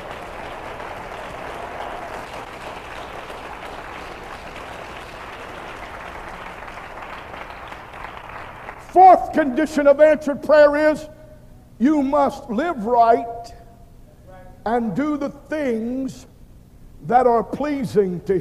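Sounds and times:
audience clapping: 0:00.0 - 0:09.3
speech: 0:08.9 - 0:11.2, 0:11.8 - 0:13.6, 0:14.6 - 0:16.3, 0:17.0 - 0:18.3.

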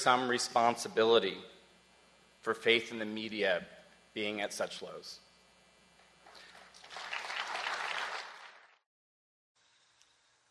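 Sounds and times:
speech: 0:00.0 - 0:01.5, 0:02.4 - 0:05.2
light applause from a small audience: 0:06.3 - 0:08.8.

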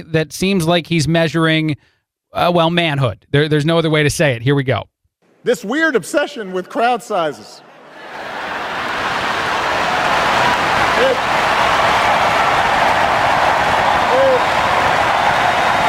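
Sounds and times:
speech: 0:00.0 - 0:08.3
giant applause from audience: 0:07.6 - 0:15.8.

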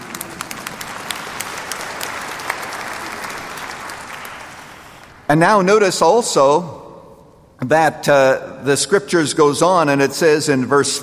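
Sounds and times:
audience clapping: 0:00.0 - 0:05.4
speech: 0:05.3 - 0:06.8, 0:07.6 - 0:11.0.

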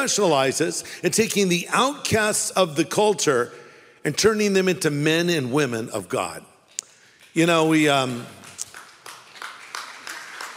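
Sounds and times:
speech: 0:00.0 - 0:06.5, 0:07.4 - 0:08.4
lone audience member clapping during a church sermon: 0:07.2 - 0:10.5.

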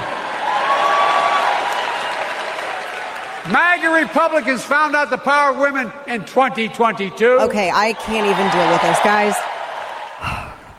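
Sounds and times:
crowd cheering and applauding: 0:00.0 - 0:04.9, 0:07.7 - 0:10.7
speech: 0:03.5 - 0:09.5.

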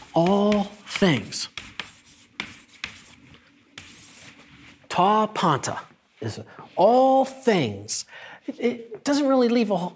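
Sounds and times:
writing something down: 0:00.0 - 0:04.8
speech: 0:00.2 - 0:01.7, 0:05.0 - 0:09.9.

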